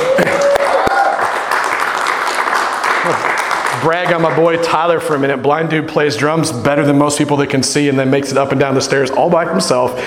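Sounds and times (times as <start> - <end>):
audience applause: 0.0 - 4.6
speech: 3.8 - 10.0.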